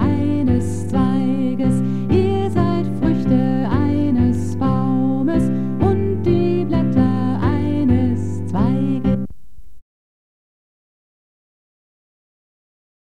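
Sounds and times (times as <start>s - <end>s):
soprano in choral music: 0.0s - 9.3s.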